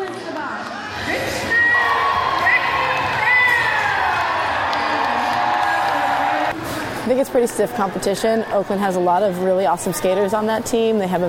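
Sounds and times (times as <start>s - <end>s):
roller derby crowd cheering in an arena: 0.3s - 6.6s
high shouts and whoops: 0.8s - 6.5s
speech: 7.1s - 11.2s.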